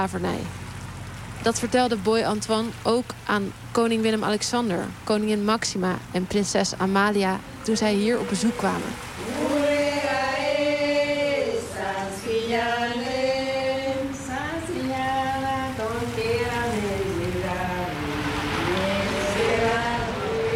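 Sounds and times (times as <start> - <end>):
speech: 0.0 - 0.6, 1.4 - 9.1
cars driving past on a street in Bonaire: 0.0 - 5.1, 6.8 - 20.5
steady loud rumble of traffic in Bonaire: 0.0 - 20.5
scooters driving past on a street in Bonaire: 8.2 - 20.5.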